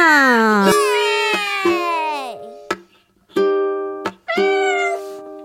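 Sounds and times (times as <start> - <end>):
voices singing playful meow sounds imitating a cat: 0.0 - 2.7, 4.3 - 5.2.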